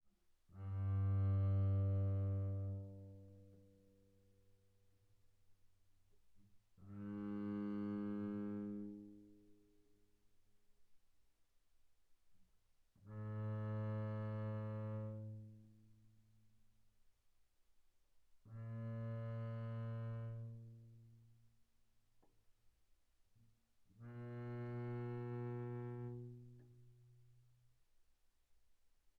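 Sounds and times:
double bass bowed arco sul G pianissimo: 0:00.6 - 0:03.7, 0:06.9 - 0:09.2, 0:13.1 - 0:15.6, 0:18.5 - 0:20.8, 0:24.0 - 0:26.8.

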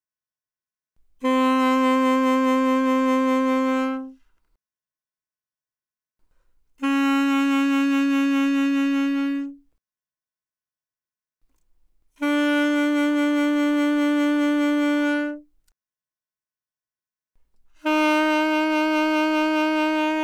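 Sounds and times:
alto saxophone with vibrato: 0:01.2 - 0:04.2, 0:06.8 - 0:09.7, 0:12.2 - 0:15.5, 0:17.8 - 0:20.2.

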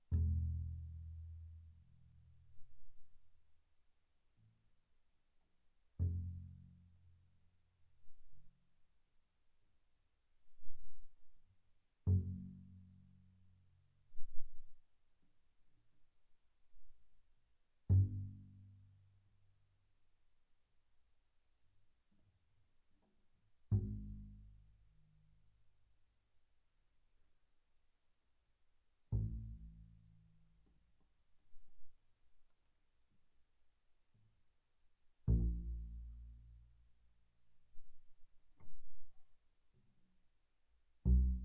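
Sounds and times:
soft double bass pizzicato on the E string: 0:00.0 - 0:03.2, 0:06.0 - 0:07.3, 0:12.0 - 0:14.8, 0:17.8 - 0:19.1, 0:23.6 - 0:25.4, 0:29.1 - 0:30.5, 0:35.3 - 0:36.9, 0:41.0 - 0:41.4.

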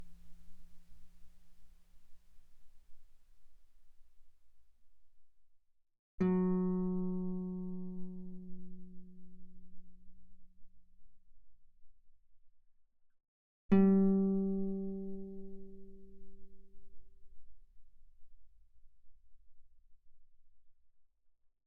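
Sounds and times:
guitar played fortissimo on the D string: 0:06.2 - 0:09.2, 0:13.7 - 0:16.2.

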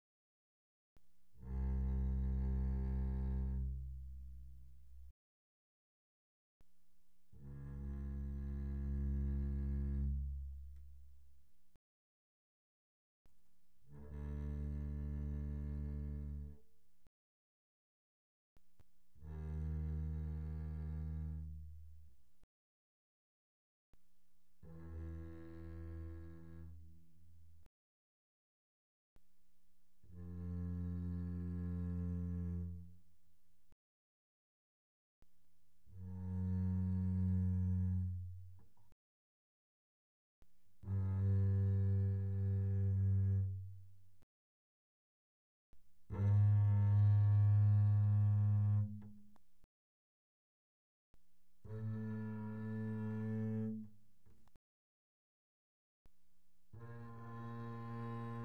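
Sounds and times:
double bass arco pianissimo on the A string: 0:01.3 - 0:05.1, 0:07.3 - 0:11.3, 0:13.8 - 0:16.7, 0:19.1 - 0:22.2, 0:24.6 - 0:27.7, 0:30.0 - 0:33.0, 0:35.8 - 0:38.8, 0:40.8 - 0:44.0, 0:46.1 - 0:49.4, 0:51.6 - 0:54.6, 0:56.7 - 0:58.4.

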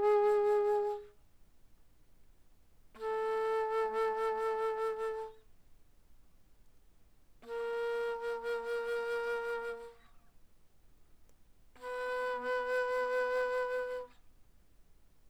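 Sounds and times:
bass flute played mezzo-forte: 0:00.0 - 0:01.1, 0:03.0 - 0:05.4, 0:07.4 - 0:10.0, 0:11.8 - 0:14.2.

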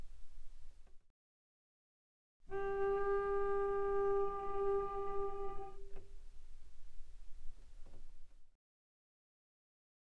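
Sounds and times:
bowed cello notes pianissimo on the G string: 0:02.5 - 0:06.1.

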